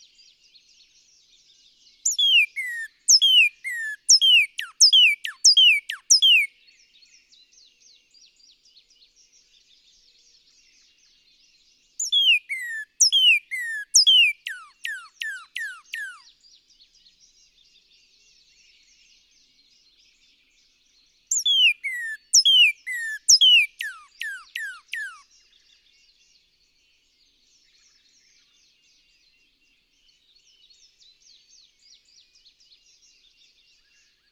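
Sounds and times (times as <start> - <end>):
Northern cardinal singing: 2.1 - 6.5, 12.0 - 16.2, 21.3 - 25.2.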